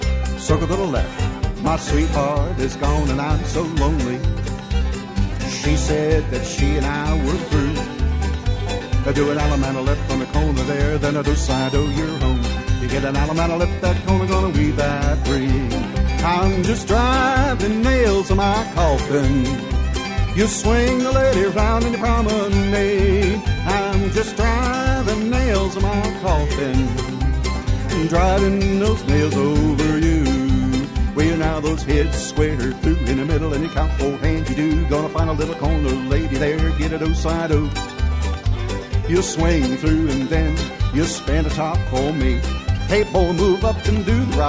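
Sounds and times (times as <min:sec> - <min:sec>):
square dance vocal: 0:00.2 - 0:44.4.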